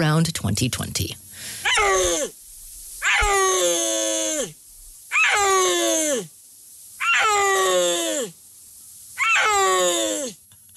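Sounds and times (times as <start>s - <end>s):
speech: 0.0s - 2.4s
Central Asian mountain wild cat calling: 1.6s - 2.4s, 3.0s - 6.3s, 7.0s - 8.3s, 9.2s - 10.4s.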